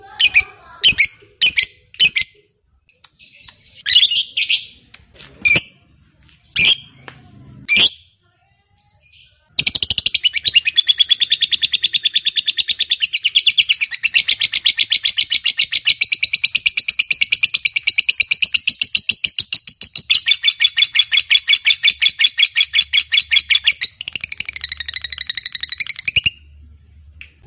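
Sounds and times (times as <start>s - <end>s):
fighter-type lovebird giving drawn-out chattering song: 0.1s - 4.8s, 9.6s - 26.5s.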